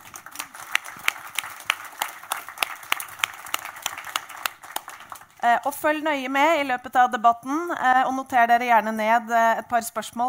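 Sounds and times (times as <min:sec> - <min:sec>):
audience applause welcoming a panel: 0:00.0 - 0:05.4
speech: 0:05.4 - 0:10.2.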